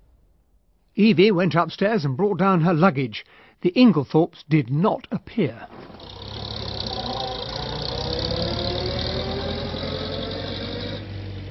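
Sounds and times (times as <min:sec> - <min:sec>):
speech: 0:01.0 - 0:06.2
car engine droning as the car drives off down a drive: 0:05.6 - 0:11.4.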